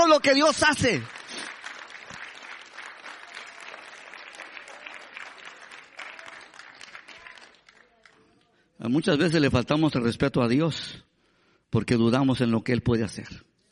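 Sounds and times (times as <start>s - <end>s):
audience applause: 0.0s - 8.2s
speech: 0.1s - 1.2s, 8.8s - 11.1s, 11.7s - 13.5s.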